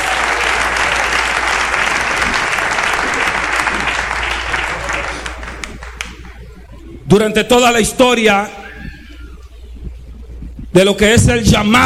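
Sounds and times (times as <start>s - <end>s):
audience applauding: 0.0s - 6.7s
speech: 7.1s - 8.6s, 10.8s - 11.8s.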